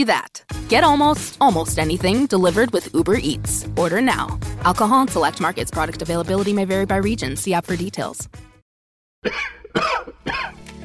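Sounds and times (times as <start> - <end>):
speech: 0.0 - 8.4, 9.2 - 10.0
person coughing: 9.2 - 10.6.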